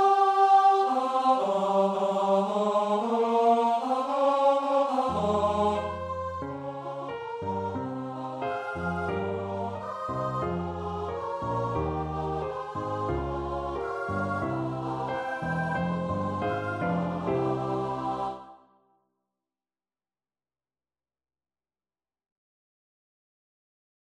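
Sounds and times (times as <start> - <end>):
choir singing: 0.0 - 18.8.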